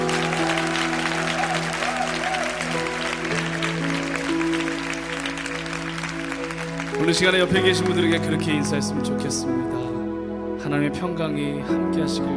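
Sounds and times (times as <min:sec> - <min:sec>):
audience applause: 0:00.0 - 0:08.4
speech: 0:07.1 - 0:09.9, 0:10.6 - 0:12.3.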